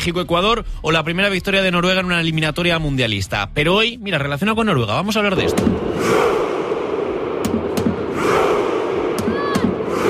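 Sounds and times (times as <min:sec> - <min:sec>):
speech: 0:00.0 - 0:06.5
fans' war chant: 0:05.4 - 0:10.0.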